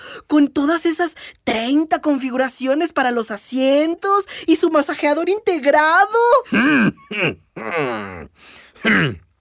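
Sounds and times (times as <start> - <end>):
speech: 0.3 - 9.3
person clearing throat: 6.5 - 9.3.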